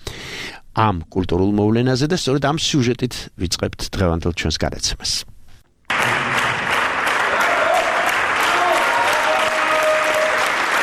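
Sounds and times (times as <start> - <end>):
speech: 0.8 - 5.3
ovation applause for a documentary film-ballet: 5.9 - 10.8.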